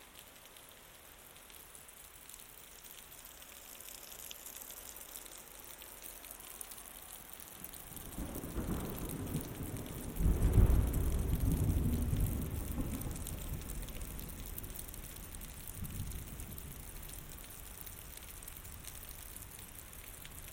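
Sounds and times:
night subtropical downpour: 0.0s - 20.5s
thunder rumbling: 8.0s - 17.1s.

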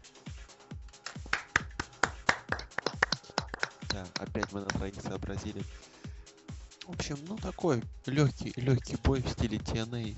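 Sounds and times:
hands clapping: 0.8s - 5.6s
speech: 3.9s - 6.0s, 6.9s - 10.1s.

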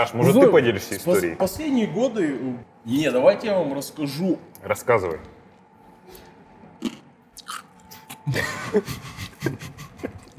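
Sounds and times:
speech: 0.0s - 5.4s, 8.3s - 10.2s
person chewing ice: 6.2s - 8.2s.

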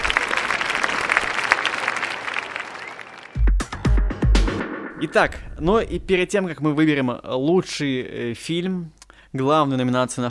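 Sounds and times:
applause: 0.0s - 3.6s
speech: 5.0s - 10.3s.

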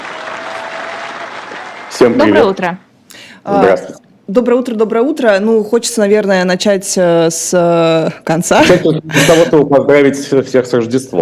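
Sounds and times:
crowd clapping vigorously: 0.0s - 2.7s
speech: 2.0s - 2.8s, 3.4s - 11.2s.

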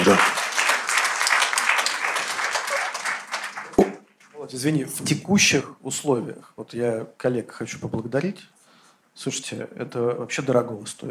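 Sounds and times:
audience applause: 0.0s - 4.0s
speech: 0.1s - 0.3s, 4.5s - 8.6s, 9.2s - 11.0s.

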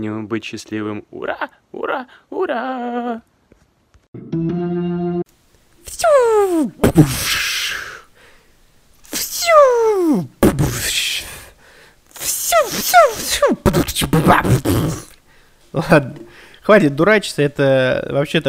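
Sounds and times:
speech: 0.0s - 3.3s, 6.4s - 7.6s, 15.7s - 18.4s
voice imitating fireworks: 5.8s - 8.1s, 9.0s - 15.2s.

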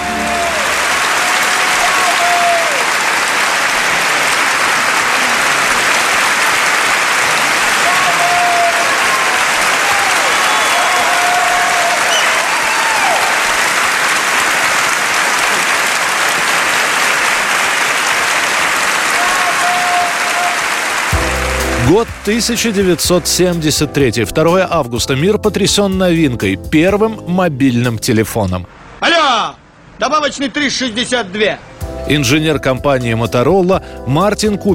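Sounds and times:
standing ovation applause from a full hall: 0.0s - 23.7s
speech: 22.3s - 29.1s, 30.0s - 34.7s.

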